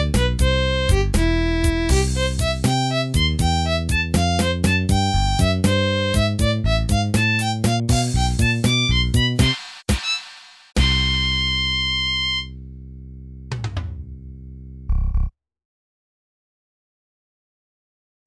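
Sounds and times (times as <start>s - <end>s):
drums: 0.0s - 12.0s, 13.5s - 14.0s.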